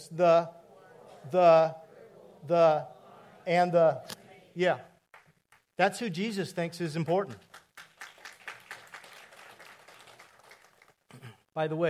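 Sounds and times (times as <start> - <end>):
speech: 0.1 - 0.6, 1.2 - 1.8, 2.4 - 4.9, 5.8 - 7.5, 11.6 - 11.8
church audience applauding in a reverberant room: 7.3 - 11.0.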